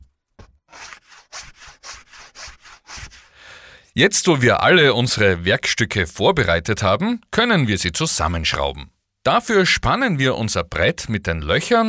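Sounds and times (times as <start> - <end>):
sandpaper sanding edges of wooden feet: 0.7 - 3.4
speech: 4.0 - 11.8.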